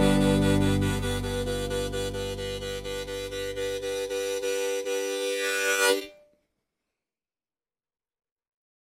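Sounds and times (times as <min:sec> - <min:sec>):
acoustic instrument: 0:00.0 - 0:06.2.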